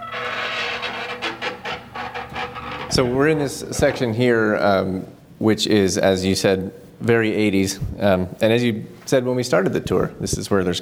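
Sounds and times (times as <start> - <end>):
heavy door with cinematic creak: 0.0 - 4.2
speech: 2.9 - 10.8.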